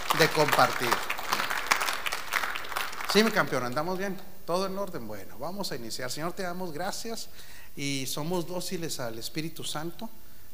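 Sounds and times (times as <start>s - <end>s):
audience applause: 0.0s - 3.7s
speech: 0.2s - 1.1s, 3.1s - 10.2s.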